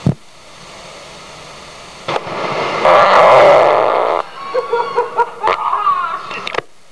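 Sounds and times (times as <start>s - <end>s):
big loud fart: 2.8s - 4.3s, 5.4s - 5.7s
laughter: 4.2s - 6.5s.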